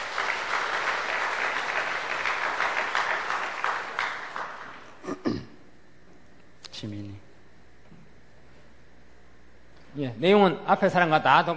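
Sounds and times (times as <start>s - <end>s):
crowd clapping: 0.0s - 5.2s
speech: 6.8s - 7.2s, 10.0s - 11.5s.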